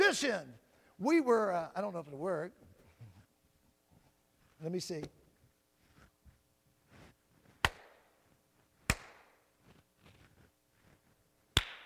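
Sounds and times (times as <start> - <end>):
speech: 0.2 - 2.7, 4.6 - 5.2
hand claps echoing through a building: 7.6 - 8.0, 8.9 - 9.4, 11.6 - 11.8.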